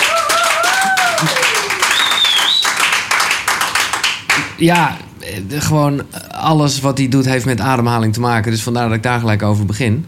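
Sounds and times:
crowd applause: 0.0s - 4.9s
sliding whistles: 1.8s - 3.0s
speech: 4.6s - 10.0s.

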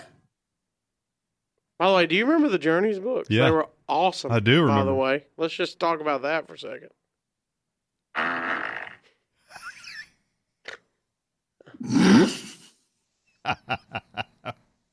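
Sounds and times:
speech: 1.8s - 7.0s, 8.2s - 8.7s, 13.5s - 14.0s
fart: 8.1s - 9.2s, 11.8s - 12.7s
laughter: 13.5s - 14.5s.

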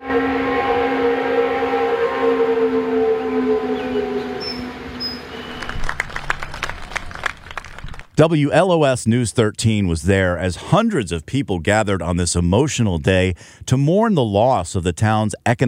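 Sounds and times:
noon whistle at the Canton paper mill blowing: 0.0s - 7.6s
speech: 8.2s - 15.6s.

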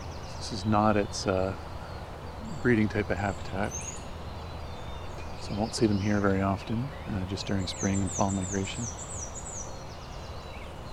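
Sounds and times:
black-and-white warbler singing: 0.0s - 10.9s
steady hiss of noise: 0.0s - 10.9s
speech: 0.5s - 1.7s, 2.6s - 3.9s, 5.5s - 9.1s.

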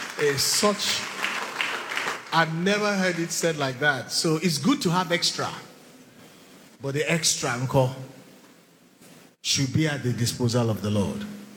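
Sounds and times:
crowd clapping: 0.0s - 3.8s
speech: 0.2s - 1.1s, 2.3s - 5.7s, 6.8s - 8.2s, 9.4s - 11.4s.

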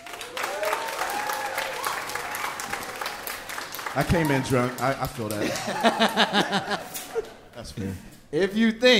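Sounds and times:
audience clapping: 0.0s - 7.6s
scattered voices and whoops: 0.3s - 2.9s
speech: 4.0s - 6.9s, 7.6s - 8.9s
laughter: 5.0s - 7.8s.

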